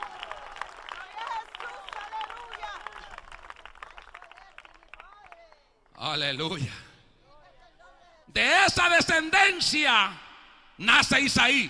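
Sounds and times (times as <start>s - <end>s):
audience applause: 0.0s - 5.6s
people calling out and cheering: 0.0s - 5.6s
speech: 6.0s - 6.9s, 8.4s - 10.2s, 10.8s - 11.6s.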